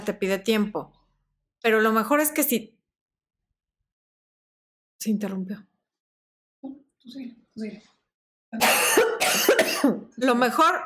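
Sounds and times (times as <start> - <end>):
speech: 0.0 - 1.0, 1.6 - 2.8, 5.0 - 5.7, 6.6 - 10.8
person coughing from dust in the throat during home renovation: 8.6 - 10.1.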